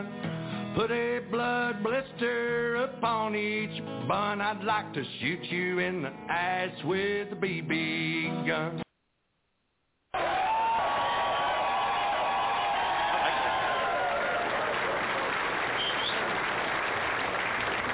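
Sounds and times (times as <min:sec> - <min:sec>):
speech: 0:00.8 - 0:08.8
studio audience applause: 0:10.2 - 0:17.9.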